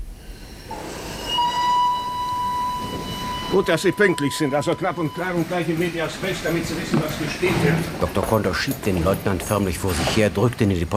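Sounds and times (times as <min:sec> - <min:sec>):
express train rumbling at a railway station: 0:00.0 - 0:10.9
high thin whistle or squealing wheels tone: 0:00.2 - 0:07.5
speech: 0:03.5 - 0:10.9.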